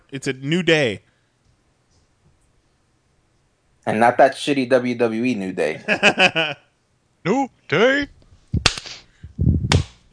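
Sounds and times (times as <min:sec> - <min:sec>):
speech: 0:00.1 - 0:01.1, 0:03.9 - 0:06.6, 0:07.2 - 0:09.6
loud sharp hand claps: 0:08.6 - 0:09.0.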